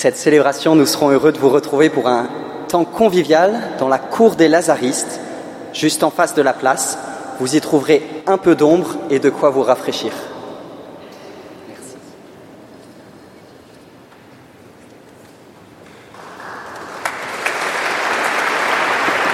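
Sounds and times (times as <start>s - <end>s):
speech: 0.0s - 10.3s
audience applauding in a cathedral: 16.1s - 19.3s.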